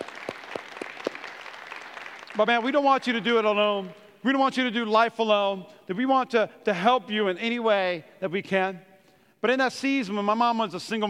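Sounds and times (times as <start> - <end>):
quiet audience applause: 0.0 - 3.9
speech: 2.4 - 11.0.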